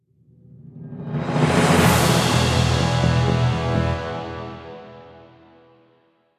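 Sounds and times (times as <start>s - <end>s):
battle end music: 1.2s - 5.7s.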